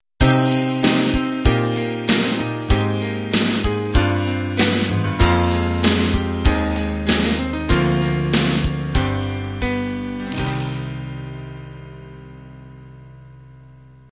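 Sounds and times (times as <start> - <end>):
rock ballad ending: 0.2 - 12.2.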